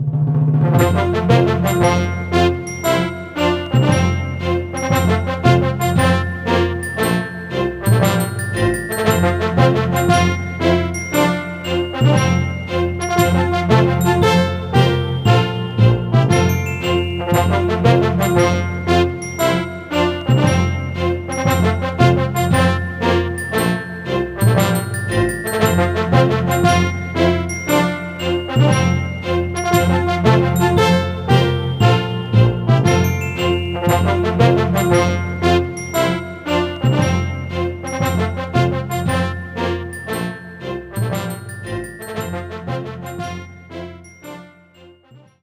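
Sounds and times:
victory theme music: 0.7s - 44.4s.

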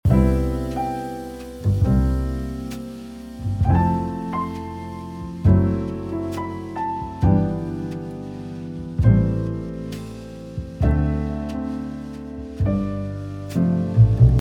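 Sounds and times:
jazz music: 0.0s - 14.3s.

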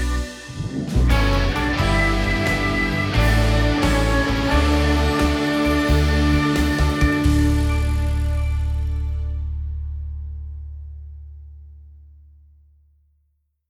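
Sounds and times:
karaoke backing track: 0.0s - 9.2s.

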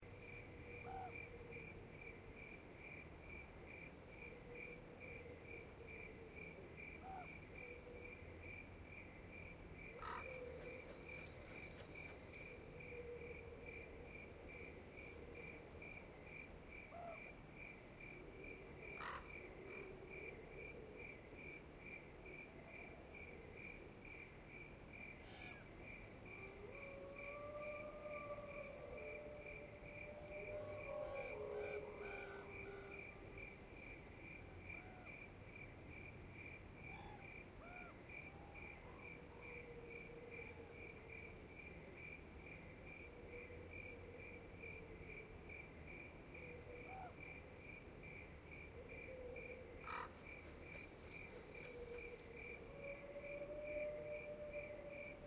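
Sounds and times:
crickets chirping: 0.0s - 55.2s.

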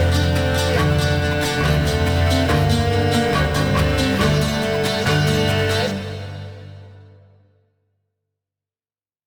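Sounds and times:
combat music loop layer: 0.0s - 6.0s.

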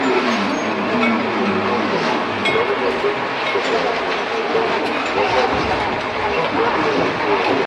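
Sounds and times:
sake brewery ambience: 0.0s - 7.6s.

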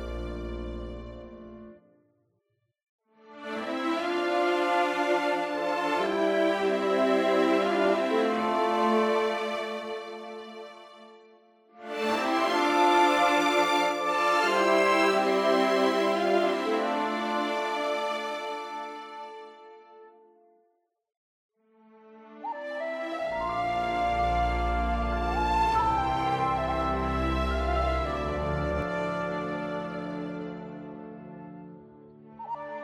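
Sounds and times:
orchestra layer: 0.0s - 1.7s, 3.6s - 10.6s, 11.8s - 19.7s, 23.1s - 31.9s.

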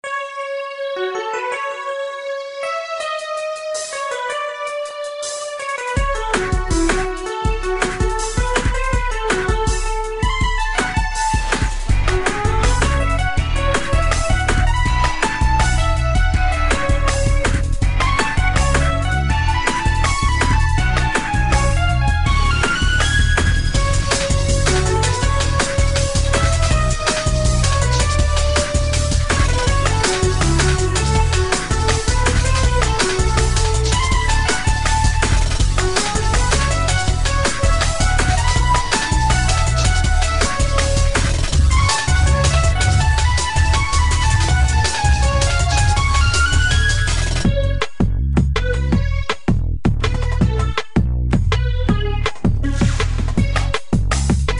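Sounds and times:
drum and bass music: 0.0s - 54.5s.

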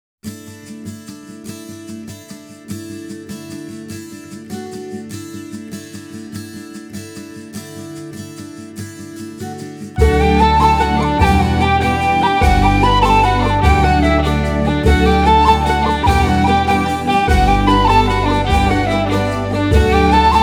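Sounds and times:
celtic music: 10.0s - 20.4s.

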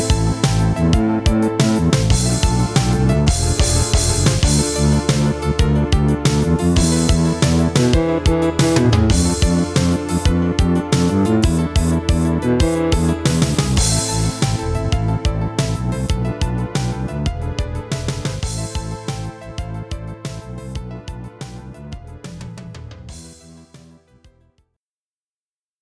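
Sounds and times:
horror music: 0.0s - 20.1s.

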